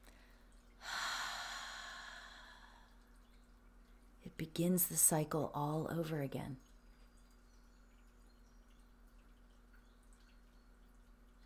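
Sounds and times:
person breathing out: 0:00.8 - 0:03.0
speech: 0:04.2 - 0:06.7.

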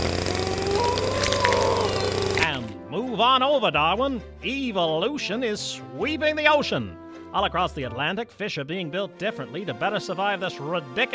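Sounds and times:
chainsaws running: 0:00.0 - 0:02.6
speech: 0:03.2 - 0:11.1.

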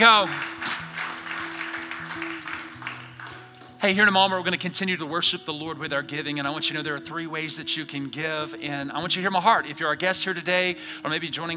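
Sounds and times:
speech: 0:00.0 - 0:00.5, 0:03.8 - 0:11.5
church congregation clapping to welcome new members: 0:00.0 - 0:04.6.

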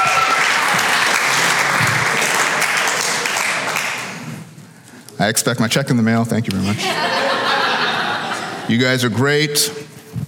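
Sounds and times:
congregation applause at a Sunday service: 0:00.0 - 0:04.4
speech: 0:05.2 - 0:07.5, 0:08.7 - 0:09.9
laughter: 0:06.6 - 0:08.8.

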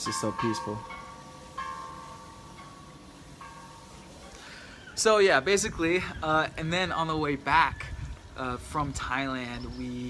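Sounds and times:
speech: 0:00.0 - 0:01.0, 0:05.0 - 0:10.0
Buddhist temple bells chiming in Thailand: 0:00.0 - 0:04.8.

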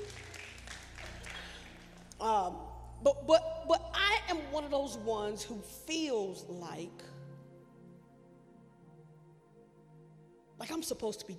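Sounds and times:
crowd applause: 0:00.0 - 0:02.2
speech: 0:02.2 - 0:03.8, 0:04.6 - 0:07.1, 0:10.8 - 0:11.3.

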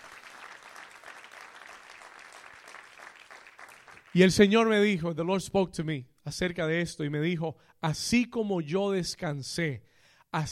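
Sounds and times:
audience applauding: 0:00.0 - 0:04.4
speech: 0:04.2 - 0:10.4.

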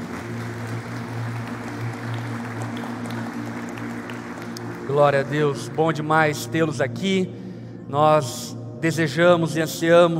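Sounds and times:
church congregation applause: 0:00.0 - 0:05.8
speech: 0:04.9 - 0:10.1.

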